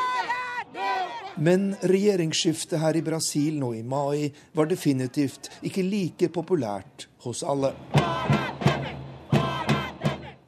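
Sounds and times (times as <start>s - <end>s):
crowd of demonstrators chanting: 0.0s - 3.4s, 7.8s - 10.4s
speech: 1.4s - 8.5s.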